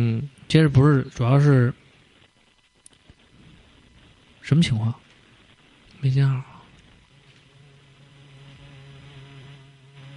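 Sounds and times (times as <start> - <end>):
speech: 0.0 - 1.8, 4.4 - 5.0, 6.0 - 6.5
housefly buzzing ringtone: 7.5 - 10.1.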